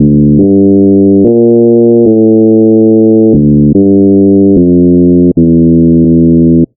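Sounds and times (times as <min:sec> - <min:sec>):
slow motion electronic loops: 0:00.0 - 0:06.7.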